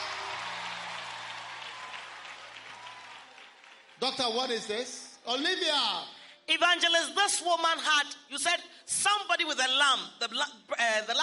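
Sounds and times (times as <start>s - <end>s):
audience clapping: 0.0s - 4.9s
speech: 4.0s - 11.2s.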